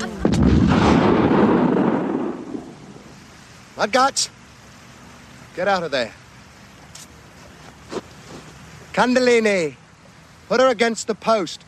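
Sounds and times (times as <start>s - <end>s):
shotgun blast in film excerpt: 0.2s - 3.1s
speech: 3.8s - 4.4s, 5.6s - 6.2s, 9.0s - 9.8s, 10.5s - 11.6s.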